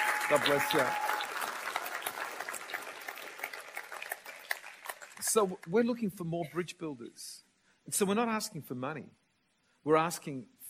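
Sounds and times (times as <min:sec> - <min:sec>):
crowd applause: 0:00.0 - 0:05.5
speech: 0:00.3 - 0:01.0, 0:05.3 - 0:09.2, 0:09.8 - 0:10.6.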